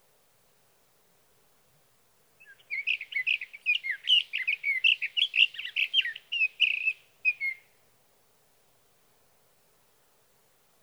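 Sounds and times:
sage thrasher singing a warbling song: 2.4 - 7.6.

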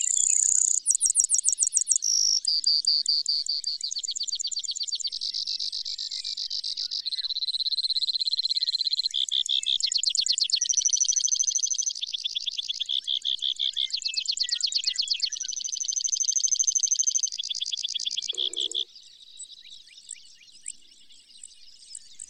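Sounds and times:
Brewer's sparrow song: 0.0 - 22.2.

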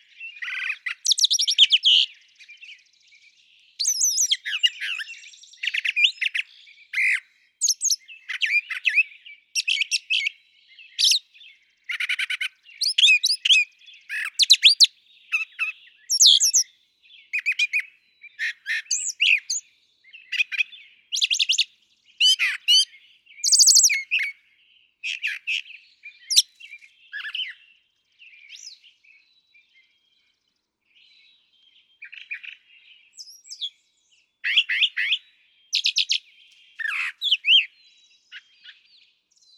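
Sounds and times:
Brown Thrasher varied song: 0.0 - 39.5.

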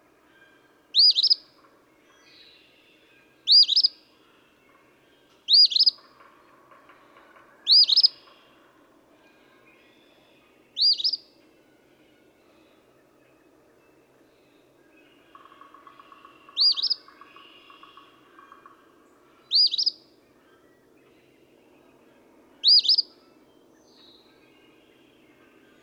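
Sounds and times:
faint low hum: 0.0 - 25.8
another bird twittering: 1.0 - 1.4, 3.5 - 4.0, 5.5 - 6.0, 7.7 - 8.2, 10.8 - 11.2, 16.5 - 17.0, 19.5 - 20.0, 22.6 - 23.1
Eastern phoebe song: 3.0 - 12.6, 15.4 - 20.2, 22.6 - 23.5.

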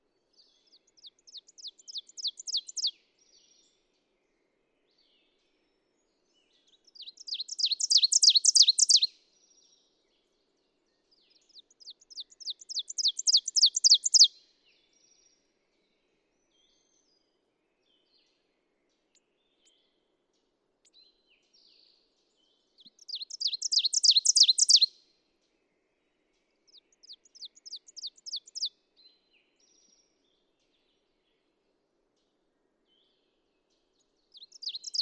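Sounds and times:
ovenbird singing: 0.7 - 2.9, 6.7 - 9.1, 11.3 - 14.3, 22.8 - 24.9, 26.7 - 28.7, 34.3 - 35.0.

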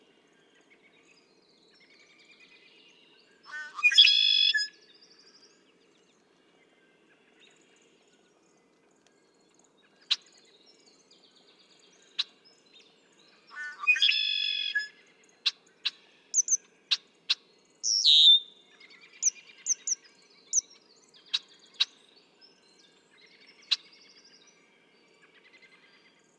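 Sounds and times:
red-winged blackbird song: 3.4 - 4.8, 11.7 - 24.4
high chirps from another bird: 16.4 - 16.6, 17.9 - 18.4, 19.2 - 20.0.

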